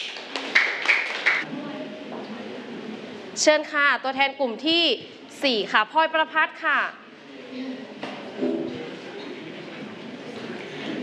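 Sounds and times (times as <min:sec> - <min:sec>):
class of students clapping: 0:00.0 - 0:01.5
murmur of voices: 0:01.4 - 0:03.8, 0:04.6 - 0:11.0
speech: 0:03.4 - 0:08.6.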